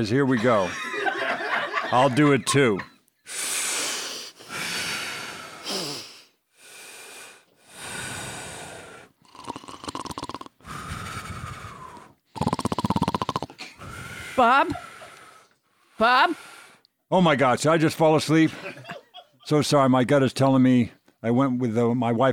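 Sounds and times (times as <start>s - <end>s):
speech: 0.0s - 0.9s, 1.9s - 2.9s, 14.4s - 14.8s, 16.0s - 16.5s, 17.1s - 18.8s, 19.5s - 22.3s
laughter: 0.0s - 3.0s, 14.4s - 15.4s, 18.4s - 19.5s
deep breathing by people sitting up straight with eyes closed: 3.2s - 9.9s, 10.5s - 16.9s.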